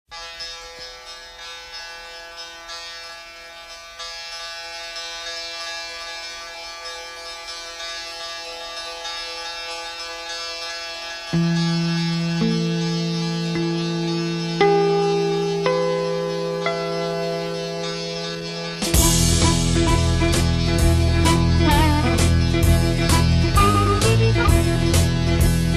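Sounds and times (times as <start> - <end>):
chords: 11.2 - 25.7.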